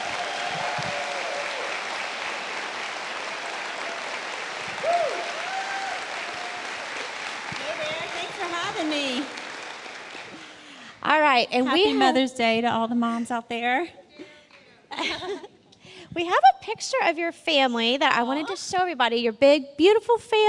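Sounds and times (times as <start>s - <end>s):
church congregation applauding a guest speaker: 0.0s - 10.9s
speech: 11.4s - 14.0s, 16.2s - 20.4s.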